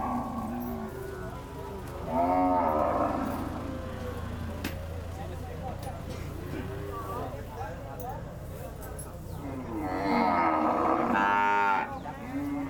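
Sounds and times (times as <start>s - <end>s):
cattle market ambience in Chiang Mai: 0.0s - 12.6s.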